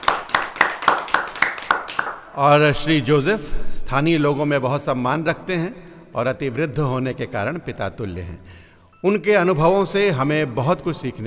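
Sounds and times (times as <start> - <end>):
audience clapping in unison: 0.0 - 2.4
speech: 2.4 - 11.2.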